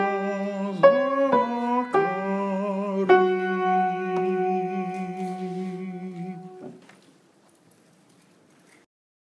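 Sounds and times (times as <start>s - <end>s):
soprano singing: 0.0s - 6.8s.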